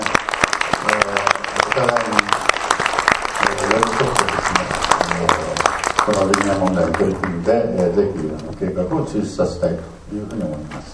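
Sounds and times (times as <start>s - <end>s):
audience applause for guests at a public event: 0.0s - 7.4s
speech: 1.8s - 2.2s, 6.1s - 10.9s.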